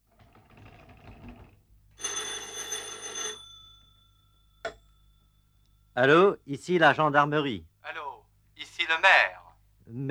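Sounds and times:
telephone bell ringing at the town hall: 0:02.0 - 0:05.5
speech: 0:06.0 - 0:07.7, 0:08.9 - 0:10.0.

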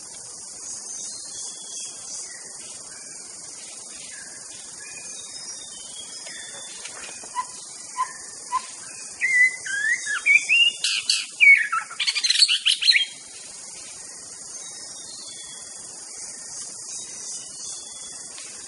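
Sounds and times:
wild white-rumped shama singing in forest: 0:07.3 - 0:13.1.

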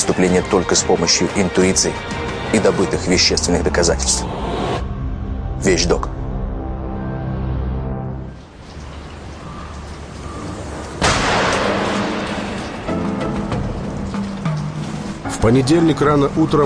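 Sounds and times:
dark rumbling wash of noise: 0:00.0 - 0:16.6
low sustained musical drone: 0:00.0 - 0:16.6
speech: 0:00.2 - 0:04.9, 0:05.6 - 0:06.1, 0:15.4 - 0:16.6
gunshot in the village of Malaya Rogan near Kharkiv: 0:11.0 - 0:12.9.

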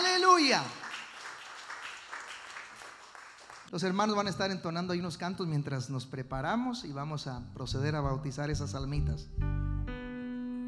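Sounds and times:
church congregation clapping during a service: 0:00.0 - 0:03.7
speech: 0:00.4 - 0:00.8, 0:03.7 - 0:09.7.

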